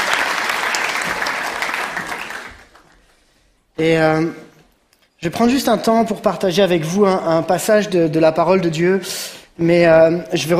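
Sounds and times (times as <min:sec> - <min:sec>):
audience applause: 0:00.0 - 0:03.2
speech: 0:03.8 - 0:04.4, 0:05.2 - 0:10.5.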